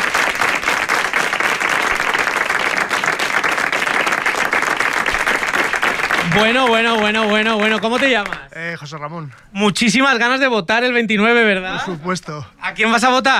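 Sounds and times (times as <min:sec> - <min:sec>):
studio audience applause: 0:00.0 - 0:08.5
speech: 0:06.4 - 0:13.3.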